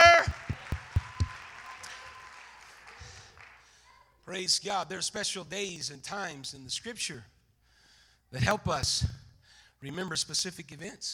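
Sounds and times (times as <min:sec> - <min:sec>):
audience clapping hands: 0:00.0 - 0:03.8
speech: 0:04.3 - 0:07.4, 0:08.3 - 0:09.2, 0:09.8 - 0:11.1.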